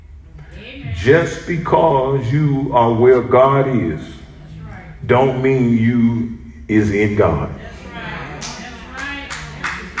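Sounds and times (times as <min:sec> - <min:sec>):
speech: 0:00.6 - 0:04.2, 0:05.0 - 0:07.7
clap: 0:08.4 - 0:09.9.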